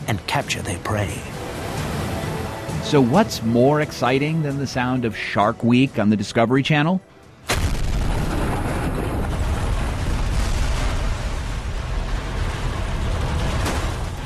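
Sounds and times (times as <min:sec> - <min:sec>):
speech: 0:00.1 - 0:01.4, 0:02.8 - 0:07.1
passenger jet crash: 0:07.5 - 0:14.2.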